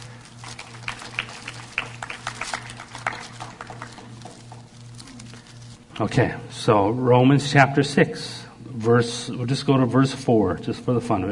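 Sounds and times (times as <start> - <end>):
audience clapping: 0.0 - 5.6
low pulsing hum: 0.0 - 11.2
speech: 6.0 - 11.2.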